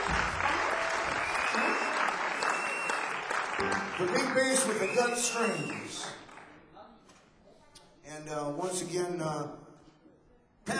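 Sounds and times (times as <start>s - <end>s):
audience applause for bass player: 0.0s - 6.6s
speech: 3.6s - 6.2s, 8.3s - 9.6s.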